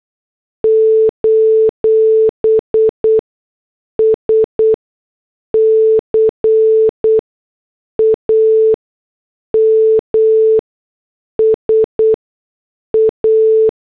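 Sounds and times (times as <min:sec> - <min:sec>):
morse code beeps: 0:00.7 - 0:03.2, 0:05.5 - 0:07.2, 0:08.0 - 0:08.8, 0:09.5 - 0:10.6, 0:11.4 - 0:12.2, 0:12.9 - 0:13.7.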